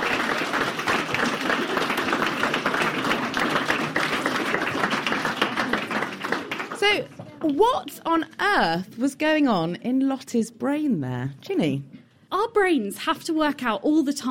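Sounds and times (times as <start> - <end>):
audience applause: 0.0 - 7.2
speech: 7.0 - 14.2.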